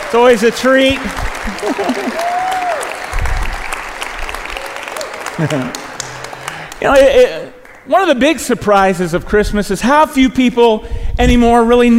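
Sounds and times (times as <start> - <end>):
audience applause: 0.0 - 7.9
speech: 0.1 - 2.6, 5.4 - 5.8, 6.8 - 11.9
laughter: 0.9 - 2.5, 5.0 - 6.9.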